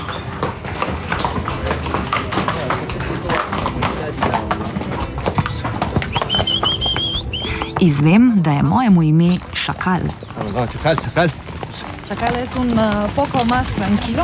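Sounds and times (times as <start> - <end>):
horses walking, hooves clip-clopping: 0.0 - 14.2
speech: 7.8 - 11.4, 12.1 - 14.2.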